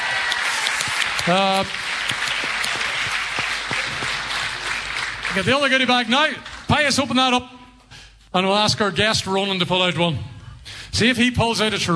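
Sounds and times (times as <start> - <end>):
audience applause: 0.0 - 6.9
speech: 1.2 - 2.2, 5.3 - 7.6, 8.3 - 10.3, 11.0 - 11.9.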